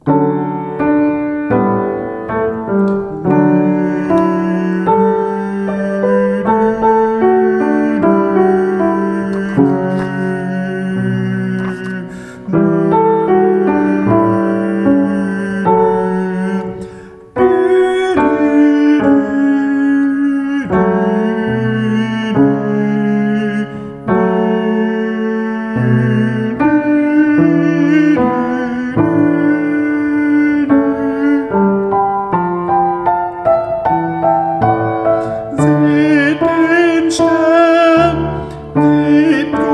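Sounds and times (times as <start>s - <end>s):
tenor singing: 0.0s - 39.7s.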